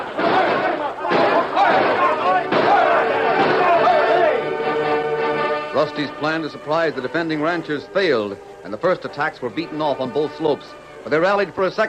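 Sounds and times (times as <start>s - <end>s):
gunfire sound effects in a radio drama battle: 0.0s - 3.9s
men shouting: 0.0s - 5.0s
speech: 5.8s - 11.8s.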